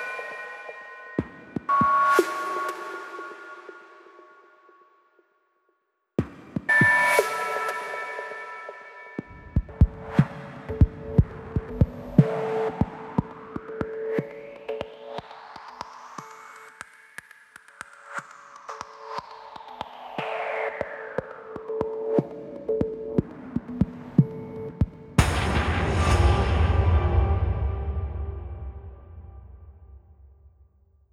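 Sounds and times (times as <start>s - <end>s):
drums at 120 BPM: 1.2s - 3.1s, 6.2s - 8.2s, 9.2s - 15.3s, 18.8s - 30.4s.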